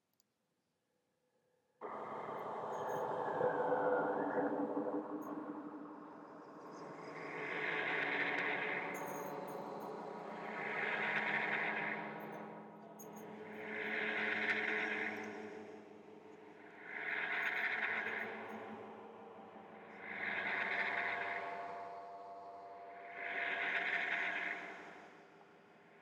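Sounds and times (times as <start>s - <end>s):
horror soundtrack music: 1.8s - 26.0s.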